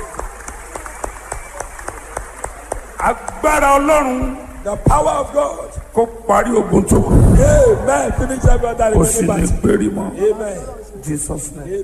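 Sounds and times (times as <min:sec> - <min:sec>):
church congregation clapping for Jesus: 0:00.0 - 0:04.1
speech: 0:03.0 - 0:11.8
low hum: 0:06.7 - 0:10.2.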